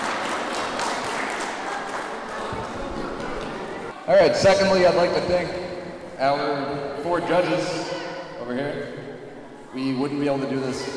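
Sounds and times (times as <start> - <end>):
audience applause: 0.0 - 3.9
speech: 4.1 - 5.6, 6.2 - 7.9, 8.5 - 9.1, 9.7 - 10.9.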